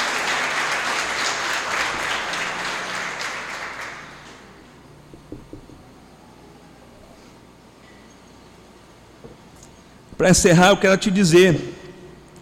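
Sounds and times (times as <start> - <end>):
audience applauding: 0.0 - 4.6
speech: 10.2 - 11.8.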